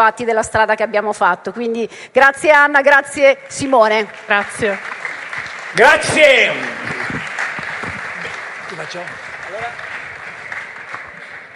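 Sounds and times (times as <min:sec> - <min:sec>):
speech: 0:00.0 - 0:07.2, 0:08.9 - 0:09.8
audience applause: 0:03.9 - 0:11.5.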